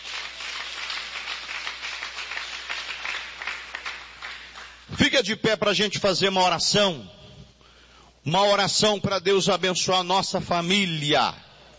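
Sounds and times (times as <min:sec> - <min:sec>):
audience clapping: 0:00.0 - 0:04.9
speech: 0:05.0 - 0:07.2, 0:08.2 - 0:11.4.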